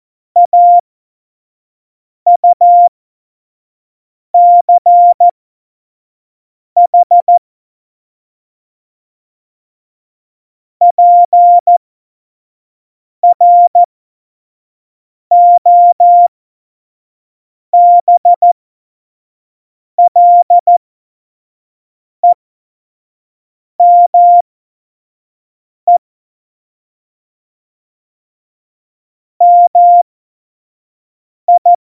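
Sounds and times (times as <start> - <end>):
CW Morse code beeps: 0.4 - 0.8, 2.3 - 2.9, 4.4 - 5.3, 6.9 - 7.4, 10.9 - 11.8, 13.2 - 13.9, 15.3 - 16.3, 17.8 - 18.6, 20.0 - 20.8, 23.8 - 24.4, 29.4 - 30.0, 31.5 - 31.8.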